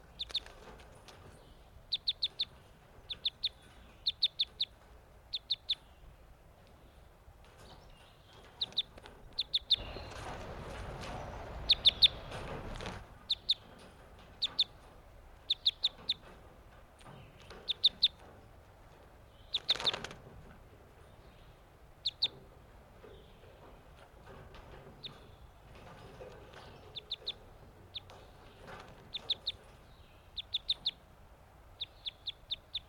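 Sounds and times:
low hiss: 0.0 - 32.8
captive crossbills giving sharp high chip calls: 9.4 - 13.6
fluttering wingbeats of captive crossbills: 9.8 - 13.2, 19.6 - 20.2, 28.0 - 29.5.

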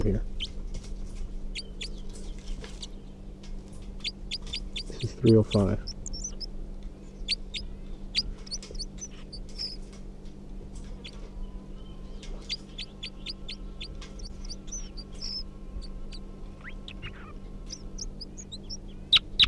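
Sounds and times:
speech: 0.0 - 0.5, 5.2 - 5.9
bird song and calls: 0.4 - 0.6, 1.5 - 9.8, 10.8 - 19.4.

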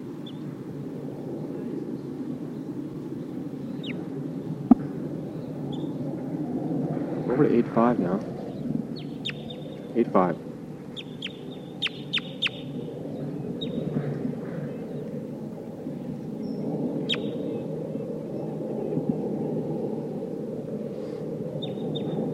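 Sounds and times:
steady low rushing noise: 0.0 - 22.3
speech: 7.4 - 8.3, 10.0 - 10.4
red crossbill chip calls, Sitka type: 8.5 - 12.9, 16.5 - 17.4.

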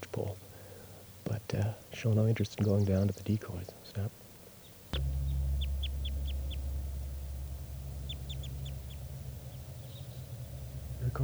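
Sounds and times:
wild type 2 crossbill calls: 0.0 - 11.2
speech: 1.5 - 4.2
loud steady low rumble: 5.0 - 11.2.

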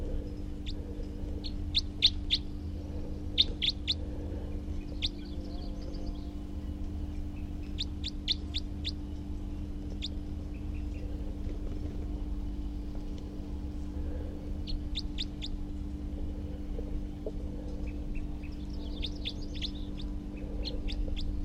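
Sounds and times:
steady low hum: 0.0 - 21.4
wild male bird calling: 0.2 - 11.2, 14.6 - 15.6, 17.7 - 21.4.

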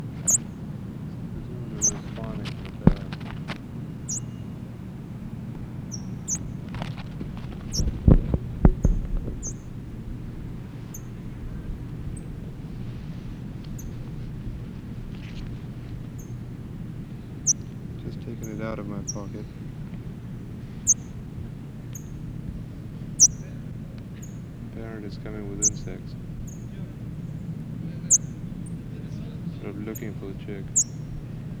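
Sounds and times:
parrot chick chirping: 0.0 - 4.7, 5.6 - 9.8, 17.3 - 19.5, 20.1 - 21.3, 23.0 - 23.5, 25.3 - 26.7, 28.1 - 28.4, 29.9 - 31.2
low rumble: 0.0 - 31.5.

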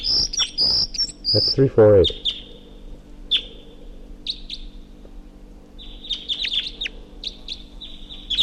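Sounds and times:
crossbill chip calls: 0.0 - 2.6, 3.3 - 3.6, 4.2 - 4.8, 5.8 - 8.4
low hum: 0.0 - 8.4
speech: 1.3 - 2.3.

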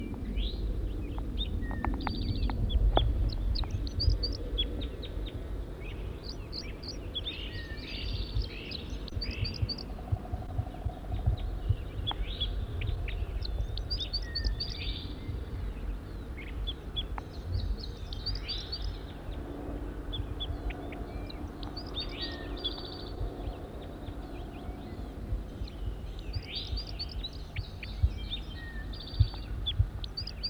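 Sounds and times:
low rumbling background: 0.0 - 30.4
wild bird singing: 0.0 - 30.4.

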